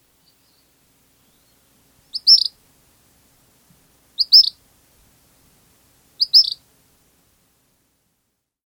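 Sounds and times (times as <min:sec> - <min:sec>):
Gray Kingbird calling: 0:00.2 - 0:02.6, 0:04.2 - 0:04.6, 0:06.2 - 0:06.6.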